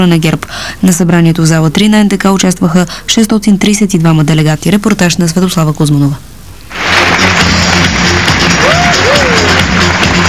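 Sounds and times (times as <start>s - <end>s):
speech: 0.0s - 8.0s
young people giving stormy ovation: 6.8s - 10.2s.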